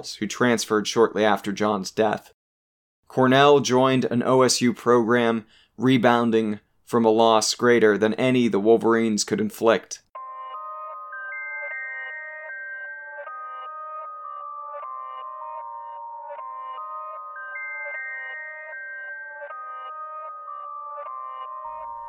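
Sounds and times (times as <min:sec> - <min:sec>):
speech: 0:00.0 - 0:02.4, 0:03.1 - 0:10.0
chimes ringing: 0:10.2 - 0:22.0.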